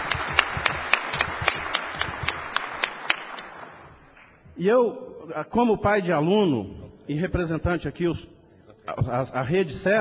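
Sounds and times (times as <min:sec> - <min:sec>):
scattered audience applause: 0:00.0 - 0:04.0
rhythmic clapping: 0:00.0 - 0:04.6
speech: 0:04.6 - 0:08.3, 0:08.9 - 0:09.9.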